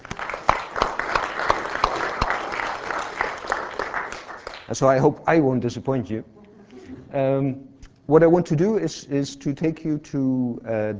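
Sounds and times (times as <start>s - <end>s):
audience round of applause: 0.0s - 4.7s
speech: 4.7s - 6.4s, 7.1s - 10.9s.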